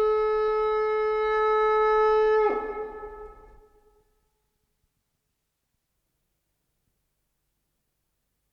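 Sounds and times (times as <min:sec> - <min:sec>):
shofar blasts: 0:00.0 - 0:03.9.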